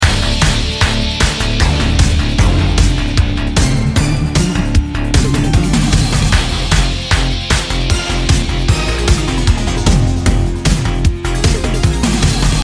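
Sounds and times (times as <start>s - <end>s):
emote aerobics music: 0.7s - 12.6s.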